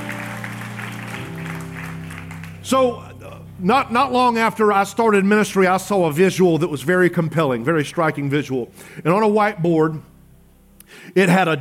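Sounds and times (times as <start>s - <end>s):
church congregation clapping hands in praise: 0.0s - 3.0s
sustained keyboard chords: 0.0s - 11.0s
speech: 2.6s - 10.1s, 10.9s - 11.5s.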